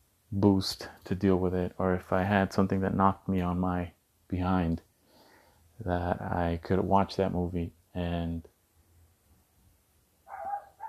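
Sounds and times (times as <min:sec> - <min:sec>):
speech: 0:00.3 - 0:04.9, 0:05.8 - 0:08.5
dog barking: 0:10.3 - 0:10.8.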